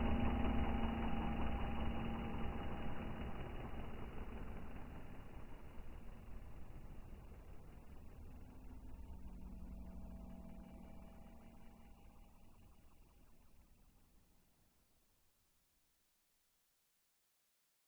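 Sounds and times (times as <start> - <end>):
long dark retro vintage drone with modulated elements: 0.0 - 14.0.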